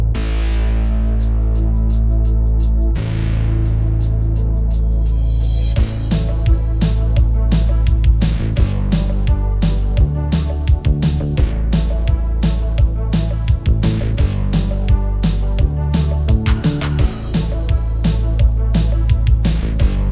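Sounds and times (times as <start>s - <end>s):
Korg Pa5X arranger keyboard style: 0.2s - 20.1s.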